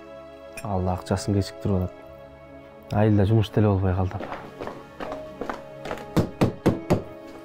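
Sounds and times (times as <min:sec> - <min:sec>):
speech: 0:00.6 - 0:02.0, 0:02.9 - 0:04.5
knocking on a house door in a village: 0:05.9 - 0:07.1.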